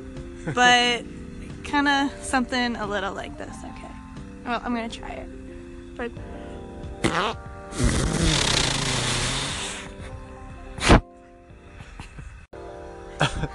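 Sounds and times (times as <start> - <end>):
speech: 0.4 - 5.4, 6.0 - 6.4, 7.0 - 8.2
raspy buzzing fart: 7.0 - 10.0, 10.8 - 11.1.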